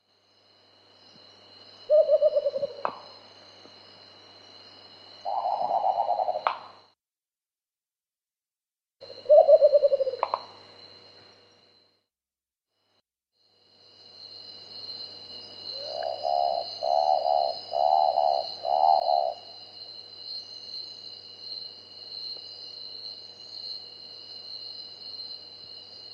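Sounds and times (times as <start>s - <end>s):
steady insect hum: 0.0s - 7.0s, 9.0s - 12.1s, 12.7s - 26.1s
Marbled frogmouth pulsed hooting notes: 5.3s - 6.5s, 9.1s - 10.4s, 15.7s - 19.6s.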